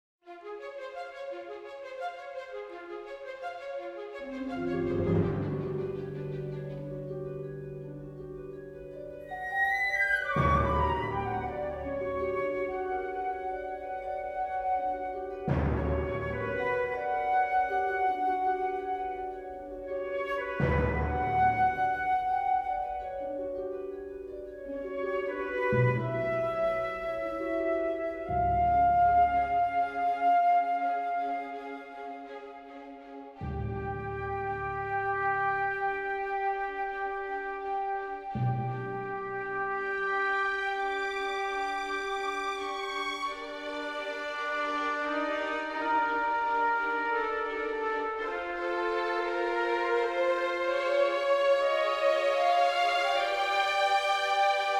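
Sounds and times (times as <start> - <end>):
world music: 4.2 - 54.7.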